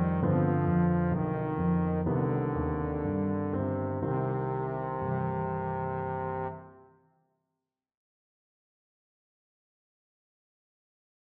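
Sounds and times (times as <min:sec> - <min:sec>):
trombone playing a folk tune: 0:00.0 - 0:06.8.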